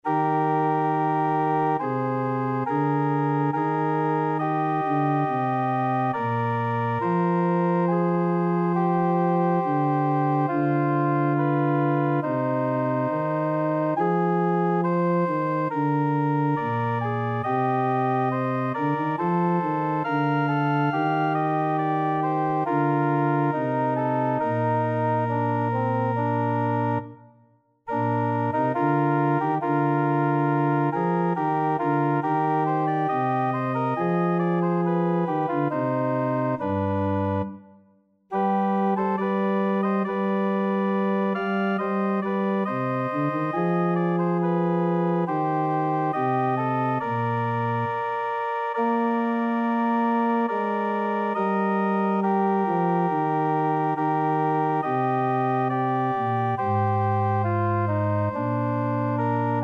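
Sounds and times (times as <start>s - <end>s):
organ: 0.0s - 27.3s, 27.9s - 59.6s.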